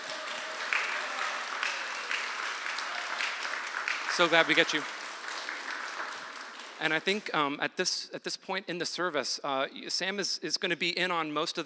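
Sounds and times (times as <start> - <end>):
round of applause from a crowd: 0.0 - 7.4
speech: 4.2 - 5.0, 6.8 - 11.6.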